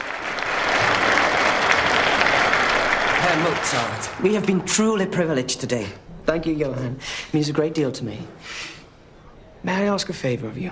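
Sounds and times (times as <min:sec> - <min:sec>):
orchestra applauding: 0:00.0 - 0:05.8
speech: 0:03.4 - 0:08.8, 0:09.6 - 0:10.7.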